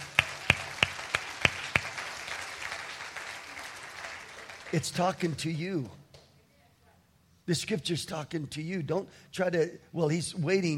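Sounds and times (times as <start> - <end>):
audience clapping: 0.0 - 5.5
speech: 4.7 - 6.0, 7.5 - 10.7.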